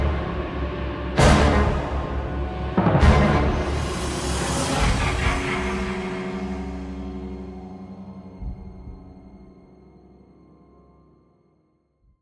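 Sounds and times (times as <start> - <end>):
brass action music: 1.1 - 7.7.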